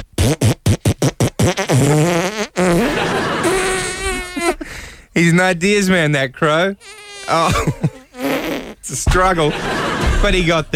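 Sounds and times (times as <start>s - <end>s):
fart noises played as music: 0.0s - 4.6s, 6.8s - 8.9s
laughter: 2.7s - 4.6s, 7.3s - 8.0s, 9.1s - 10.7s
speech: 5.4s - 8.0s, 8.9s - 10.7s.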